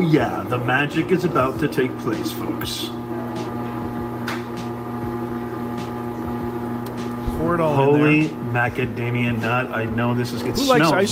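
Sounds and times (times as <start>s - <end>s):
speech: 0.0s - 3.5s, 7.4s - 11.1s
Cuisinart ice cream maker motor running: 0.8s - 11.1s.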